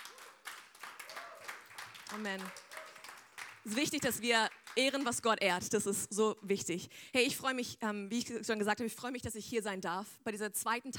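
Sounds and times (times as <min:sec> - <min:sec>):
audience applause: 0:00.0 - 0:05.1
speech: 0:02.1 - 0:02.7, 0:03.6 - 0:10.9.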